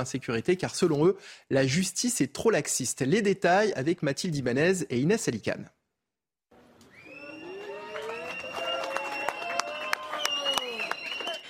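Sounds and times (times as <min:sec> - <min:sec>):
speech: 0:00.0 - 0:05.8
supporters applauding outside a courthouse: 0:07.0 - 0:11.4.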